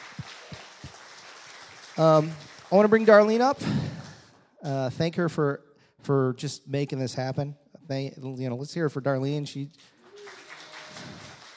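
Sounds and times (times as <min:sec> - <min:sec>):
audience applause: 0:00.0 - 0:04.3, 0:09.8 - 0:11.5
speech: 0:02.0 - 0:03.8, 0:04.6 - 0:10.0.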